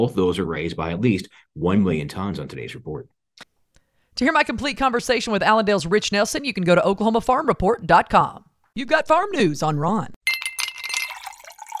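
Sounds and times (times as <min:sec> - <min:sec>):
speech: 0:00.0 - 0:03.2, 0:04.2 - 0:10.2
cool water being poured into a glass: 0:10.3 - 0:11.7.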